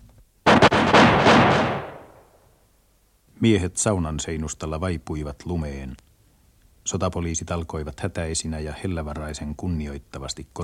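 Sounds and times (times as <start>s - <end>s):
firing squad rifle volley: 0.5s - 2.3s
long rumbling echo: 0.5s - 2.3s
speech: 3.4s - 6.1s, 6.8s - 10.6s.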